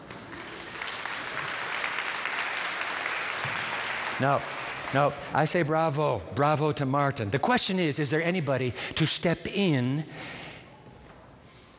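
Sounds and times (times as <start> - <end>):
audience clapping: 0.0 - 5.6
speech: 4.2 - 10.4.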